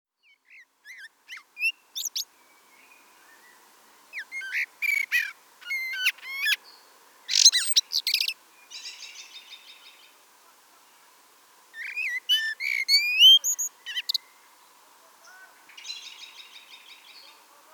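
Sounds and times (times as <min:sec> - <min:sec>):
common blackbird chirps and twitters: 0:00.2 - 0:02.2, 0:04.2 - 0:06.6, 0:07.3 - 0:09.2, 0:11.8 - 0:14.2
low hiss: 0:00.2 - 0:17.7.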